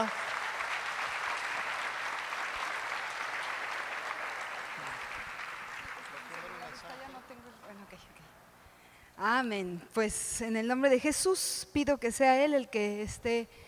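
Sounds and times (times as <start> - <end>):
crowd clapping in sustained applause: 0.0 - 7.8
speech: 9.2 - 13.6.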